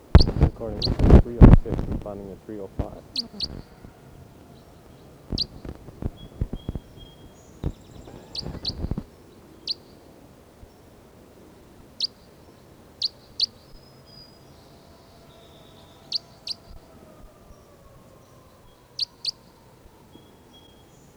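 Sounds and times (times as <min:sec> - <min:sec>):
bird chirping: 0:00.0 - 0:21.1
speech: 0:00.6 - 0:03.8.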